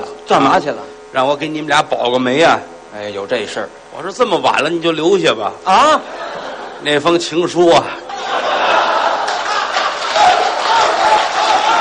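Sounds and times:
speech: 0.3 - 8.0
laughter: 5.8 - 7.2, 7.8 - 11.8
audience applause and cheering: 8.1 - 11.8.

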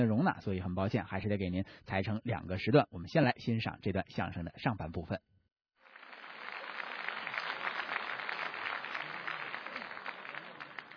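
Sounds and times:
speech: 0.0 - 5.3
audience applause: 5.8 - 10.9.

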